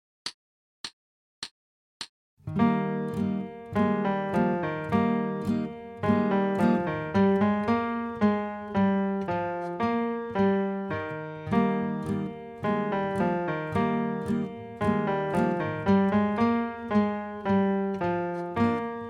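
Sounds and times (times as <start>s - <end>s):
musette music: 2.5s - 19.0s.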